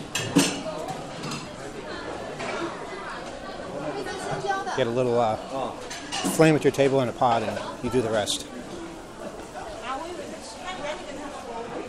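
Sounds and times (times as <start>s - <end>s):
constant murmur of crowd chatter: 0.0s - 11.8s
dishes and cutlery clinking at a hot pot area: 0.1s - 1.6s, 5.8s - 7.6s
speech: 4.8s - 8.6s.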